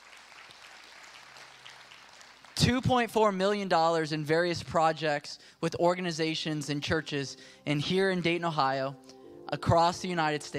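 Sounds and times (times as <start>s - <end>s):
faint audience applause: 0.0s - 2.6s
speech: 2.6s - 10.5s.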